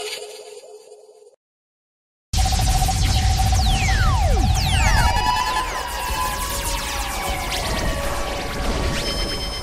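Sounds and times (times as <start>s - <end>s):
DJ sound effects: 2.4s - 9.6s.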